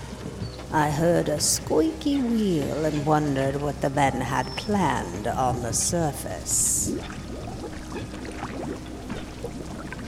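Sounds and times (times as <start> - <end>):
speech: 0.7 - 7.2
hot tar pouring: 6.9 - 10.0.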